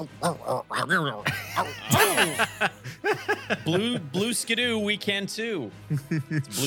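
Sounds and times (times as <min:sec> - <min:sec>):
voice imitating hyena noises: 0:00.0 - 0:02.0
speech: 0:00.0 - 0:06.6
laughter: 0:01.2 - 0:04.2, 0:05.9 - 0:06.6.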